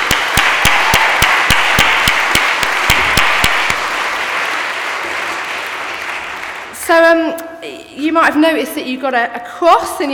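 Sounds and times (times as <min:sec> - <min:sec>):
audience applause: 0:00.0 - 0:06.8
speech: 0:06.9 - 0:07.4, 0:08.0 - 0:10.1.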